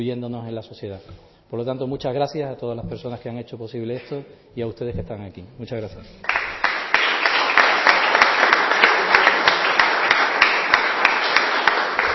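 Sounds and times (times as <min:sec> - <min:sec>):
speech: 0:00.0 - 0:06.6
audience applause: 0:06.2 - 0:12.1.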